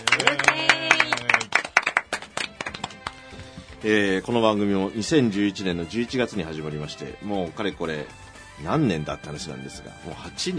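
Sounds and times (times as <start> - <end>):
hands clapping: 0.0 - 3.8
speech: 3.8 - 10.5.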